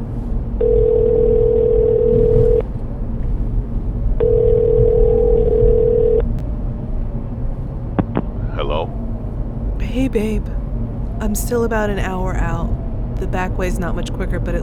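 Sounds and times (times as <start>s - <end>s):
constant low engine-like rumble: 0.0s - 14.6s
phone ringback tone: 0.6s - 2.6s, 4.2s - 6.2s
speech: 11.2s - 14.6s.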